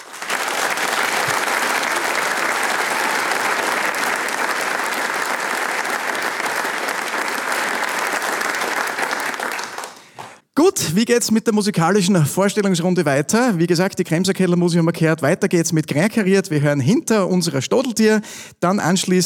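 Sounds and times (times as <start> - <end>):
audience applause in the Arbeiterheimsaal in Vohnsdorf after a performance: 0.0 - 10.4
speech: 10.6 - 19.2.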